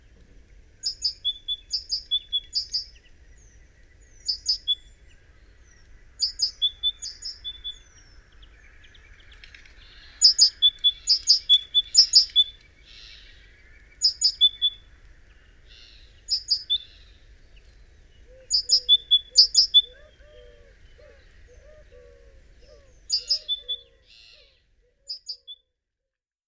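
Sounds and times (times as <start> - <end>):
great tit calling: 0.8 - 2.9, 4.2 - 4.8, 10.2 - 13.3, 14.0 - 14.8, 15.7 - 17.0, 18.5 - 20.0, 23.0 - 24.4, 25.1 - 25.6.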